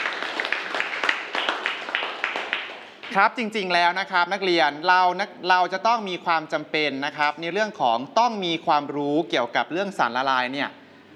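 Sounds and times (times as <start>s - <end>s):
students clapping: 0.0s - 3.2s
speech: 3.1s - 10.8s.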